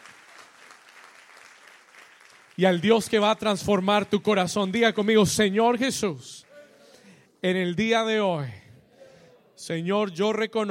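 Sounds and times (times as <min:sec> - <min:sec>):
loud sustained applause from a large crowd: 0:00.0 - 0:03.4
speech: 0:02.6 - 0:06.4, 0:07.4 - 0:08.6, 0:09.6 - 0:10.6.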